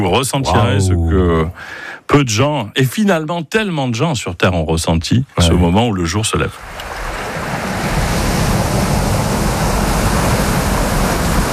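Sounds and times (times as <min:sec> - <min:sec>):
speech: 0:00.0 - 0:06.9
ocean waves on a beach: 0:06.6 - 0:11.5.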